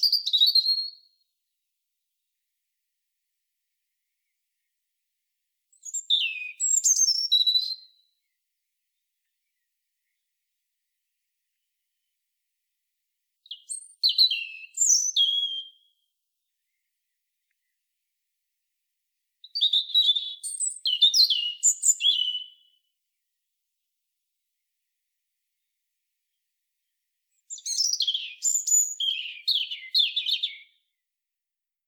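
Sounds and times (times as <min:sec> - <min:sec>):
European robin singing: 0:00.0 - 0:01.0, 0:05.7 - 0:08.4, 0:13.5 - 0:15.9, 0:19.5 - 0:22.8, 0:27.5 - 0:30.8.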